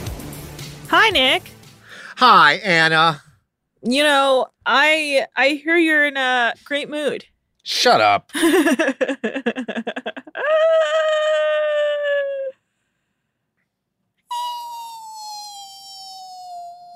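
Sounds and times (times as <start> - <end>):
speech: 0.9 - 1.6, 2.2 - 3.2, 3.8 - 11.8
laughter: 8.3 - 11.4
voice imitating a balloon letting out air: 14.3 - 16.9.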